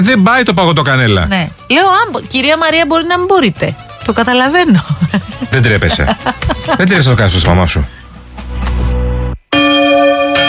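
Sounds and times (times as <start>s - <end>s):
speech: 0.0s - 8.0s
laughter: 4.8s - 8.9s
church bells ringing: 9.6s - 10.4s.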